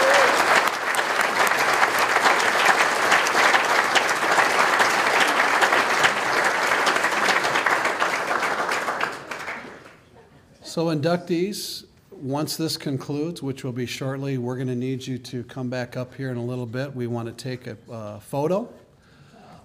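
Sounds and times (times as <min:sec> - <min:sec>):
audience round of applause: 0:00.0 - 0:10.0
speech: 0:10.8 - 0:18.8.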